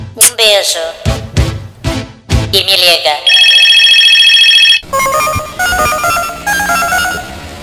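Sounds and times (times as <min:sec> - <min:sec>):
speech: 0:00.3 - 0:01.2, 0:02.5 - 0:03.6
mobile phone ringing on a street with a melodic electronic ringtone: 0:03.3 - 0:07.5.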